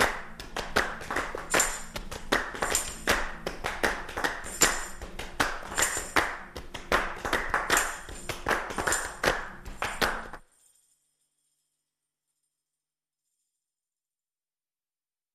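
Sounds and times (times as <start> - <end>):
percussion mix: 0.0 - 10.6.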